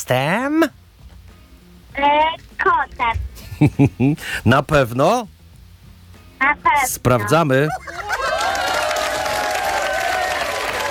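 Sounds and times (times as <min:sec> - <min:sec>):
speech: 0:00.0 - 0:00.8, 0:02.0 - 0:05.4, 0:06.4 - 0:08.0
laughter: 0:03.4 - 0:04.2, 0:07.6 - 0:09.8
cheering: 0:07.9 - 0:10.8.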